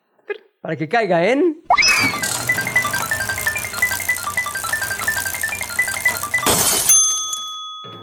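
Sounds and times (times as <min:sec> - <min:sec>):
speech: 0:00.7 - 0:02.2
spinning prize wheel clicking: 0:01.8 - 0:07.6
ringing chime: 0:01.9 - 0:08.0.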